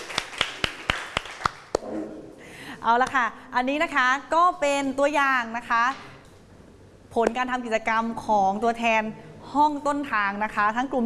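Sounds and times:
rhythmic hand claps: 0.0s - 1.8s
speech: 2.8s - 6.1s, 7.1s - 11.0s.

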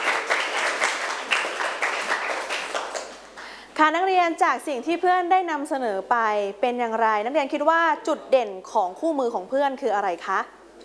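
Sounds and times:
class applauding: 0.0s - 3.5s
speech: 3.8s - 10.6s.

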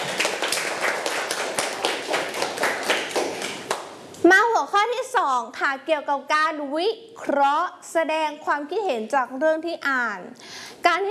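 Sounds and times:
children clapping hands: 0.0s - 4.0s
speech: 4.2s - 11.0s.

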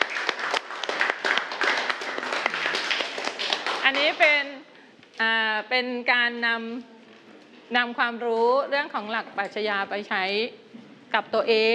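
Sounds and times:
classroom applause: 0.0s - 4.3s
speech: 3.9s - 4.5s, 5.2s - 7.0s, 7.7s - 11.7s.

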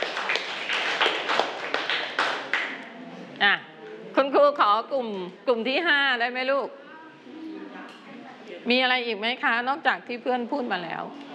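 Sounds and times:
students clapping for a classmate: 0.0s - 2.9s
speech: 4.6s - 6.8s, 8.6s - 11.3s.

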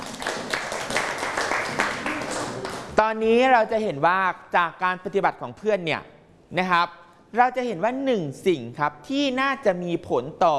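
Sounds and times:
class of students clapping for a classmate: 0.0s - 3.0s
speech: 3.0s - 10.5s.

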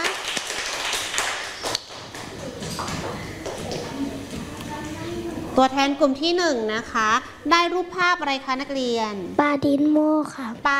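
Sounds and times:
classroom applause: 0.0s - 4.0s
speech: 5.6s - 10.7s.

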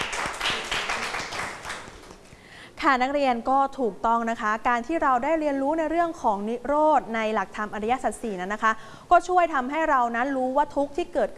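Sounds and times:
students clapping for a classmate during a lesson: 0.0s - 2.3s
speech: 2.8s - 11.3s.

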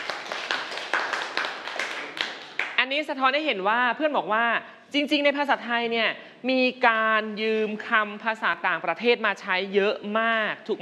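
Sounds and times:
class clapping for a fellow student: 0.0s - 2.8s
speech: 2.9s - 10.8s.

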